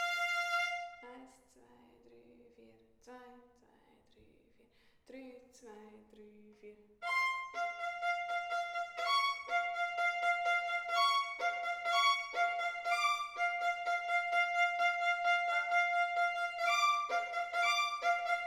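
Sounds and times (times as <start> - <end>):
violin in a children's orchestra: 0.0 - 1.0, 7.0 - 18.4.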